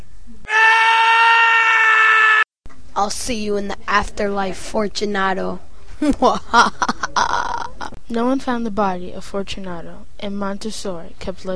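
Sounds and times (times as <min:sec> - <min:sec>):
man screaming as he is walled in with bricks: 0:00.4 - 0:02.5
speech: 0:03.0 - 0:06.9, 0:08.1 - 0:11.5.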